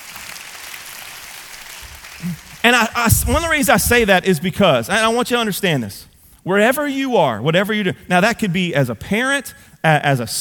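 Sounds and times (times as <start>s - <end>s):
audience clapping hands: 0.0s - 4.0s
speech: 2.2s - 10.4s.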